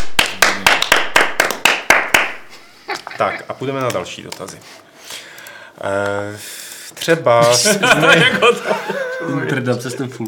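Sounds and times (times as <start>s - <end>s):
applause: 0.0s - 2.5s
laughter: 2.9s - 3.6s, 7.4s - 10.1s
speech: 3.2s - 4.9s, 5.8s - 10.2s.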